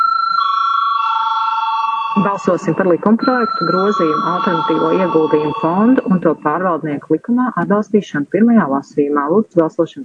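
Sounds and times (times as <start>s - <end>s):
parliament chamber bell ringing for vote: 0.0s - 6.7s
speech: 2.2s - 10.0s.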